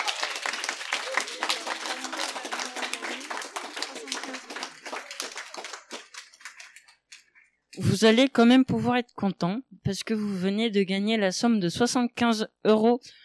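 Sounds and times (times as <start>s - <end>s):
audience applause: 0.0s - 7.0s
speech: 7.8s - 13.2s.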